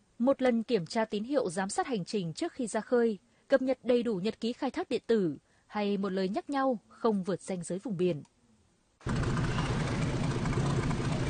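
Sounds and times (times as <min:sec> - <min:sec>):
speech: 0:00.2 - 0:08.3, 0:09.0 - 0:09.2
fishing boat engine running at a fishing port in Gia Lai province: 0:09.0 - 0:11.2.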